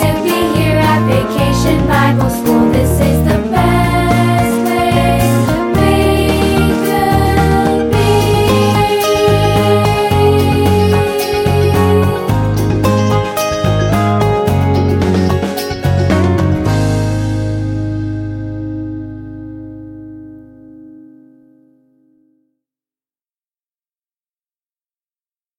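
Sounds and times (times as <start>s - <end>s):
instrumental music with vocals: 0.0s - 18.5s.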